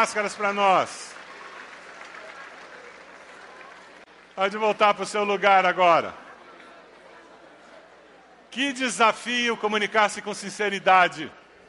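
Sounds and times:
speech: 0:00.0 - 0:01.2, 0:04.4 - 0:06.2, 0:08.5 - 0:11.4
audience applause: 0:00.0 - 0:04.9.

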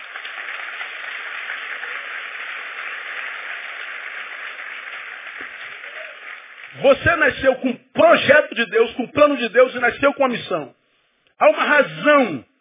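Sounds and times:
audience applauding: 0:00.0 - 0:07.4
speech: 0:06.7 - 0:10.8, 0:11.4 - 0:12.5.

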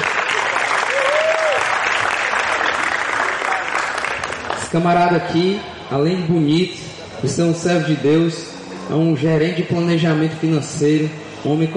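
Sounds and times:
crowd applauding: 0:00.0 - 0:05.0
speech: 0:04.7 - 0:11.7.

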